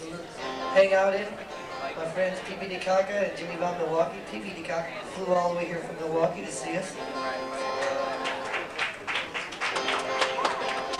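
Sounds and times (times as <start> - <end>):
speech: 0.8 - 7.6
smattering of applause: 7.6 - 10.9.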